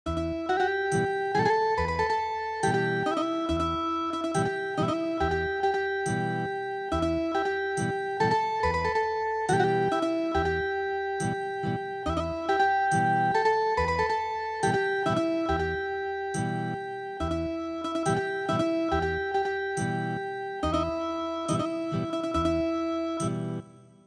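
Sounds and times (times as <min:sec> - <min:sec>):
ethnic guitar music: 0:00.1 - 0:23.9.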